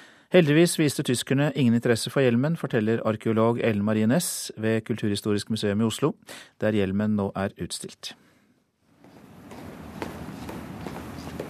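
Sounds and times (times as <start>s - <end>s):
speech: 0.3s - 8.2s
footsteps into the Viking Age exhibition, Museum of Cultural History, Oslo: 8.9s - 11.4s.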